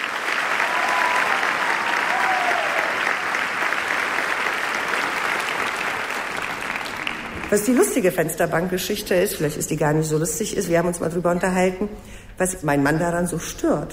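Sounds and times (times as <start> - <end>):
audience applause: 0.0 - 8.0
speech: 7.5 - 13.9.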